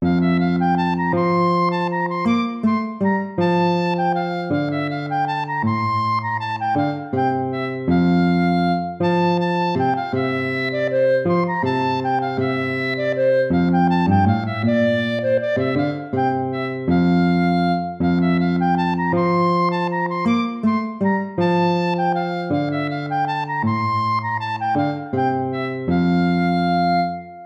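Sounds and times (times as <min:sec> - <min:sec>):
lute playing: 0:00.0 - 0:27.4.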